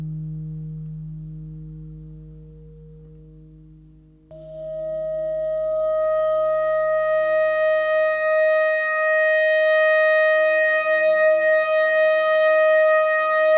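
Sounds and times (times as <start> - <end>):
clarinet notes: 4.3 - 13.5.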